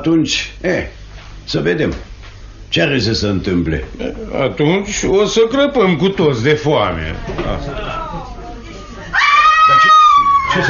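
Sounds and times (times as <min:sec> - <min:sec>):
speech: 0:00.0 - 0:02.1, 0:02.7 - 0:08.2
laughter: 0:07.1 - 0:10.6
woman screaming: 0:09.1 - 0:10.6.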